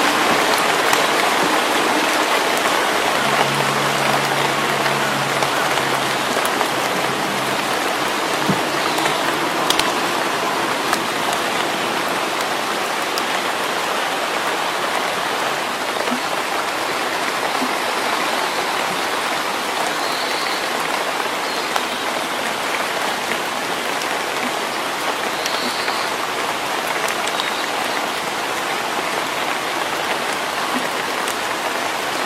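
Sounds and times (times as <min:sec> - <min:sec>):
steady rain in a forest in early summer: 0:00.0 - 0:32.2
low hum: 0:01.2 - 0:12.7.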